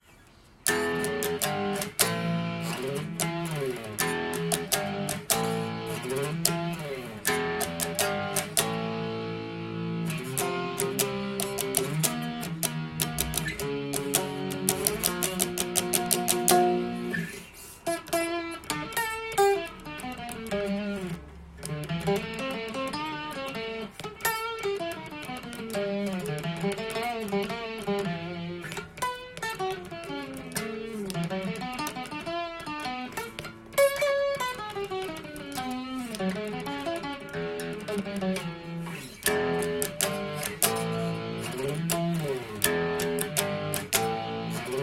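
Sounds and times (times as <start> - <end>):
guitar playing: 0.0 - 44.8.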